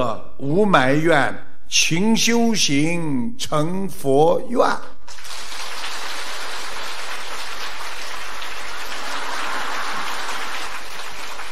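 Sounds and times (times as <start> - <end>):
speech: 0.1 - 5.4
audience applause: 5.1 - 11.4.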